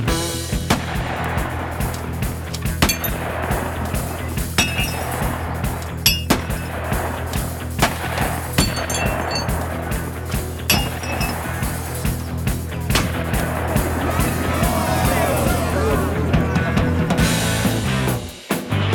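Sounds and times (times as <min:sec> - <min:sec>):
laughter: 0:00.0 - 0:18.2
22 long rifle gunfire: 0:00.6 - 0:14.6.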